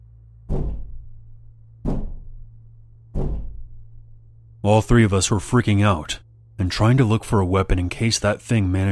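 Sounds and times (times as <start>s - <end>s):
low hum: 0.0s - 8.9s
something striking a wooden door: 0.4s - 4.1s
speech: 4.6s - 8.9s.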